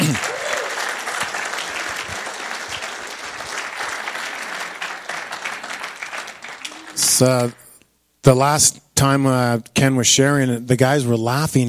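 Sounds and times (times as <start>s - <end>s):
audience applause: 0.0s - 7.6s
speech: 7.2s - 7.6s, 8.2s - 11.6s.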